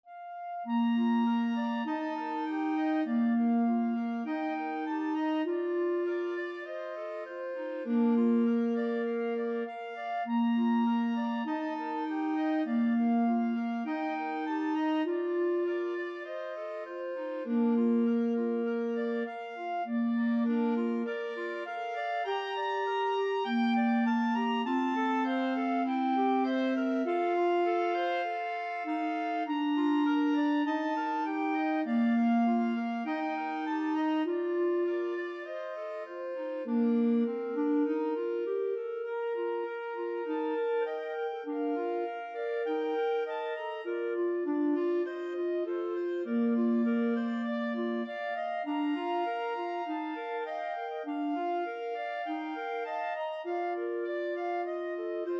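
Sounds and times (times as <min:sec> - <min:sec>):
clarinet trio: 0:00.1 - 0:55.3.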